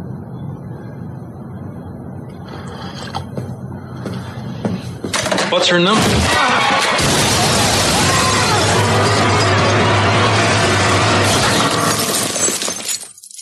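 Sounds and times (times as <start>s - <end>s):
speech: 5.5s - 7.2s
glass or bone breaking sound effect: 6.0s - 13.3s.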